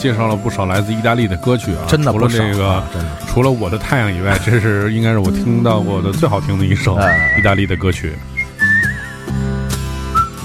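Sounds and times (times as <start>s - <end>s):
speech: 0.0s - 8.8s
laughter: 2.6s - 8.1s
whistling with vibrato: 7.0s - 10.4s.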